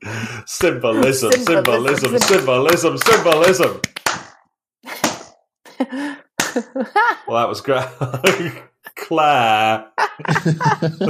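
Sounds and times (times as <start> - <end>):
speech: 0.2 - 4.1, 5.9 - 11.0
hand claps to sync recordings: 0.6 - 4.4, 5.0 - 5.4, 6.4 - 6.6
laughter: 0.8 - 3.8, 5.7 - 11.0.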